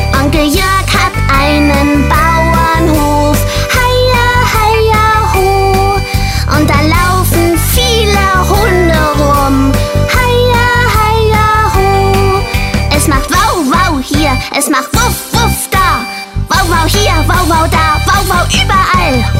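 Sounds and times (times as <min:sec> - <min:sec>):
child singing a farm song: 0:00.1 - 0:19.3.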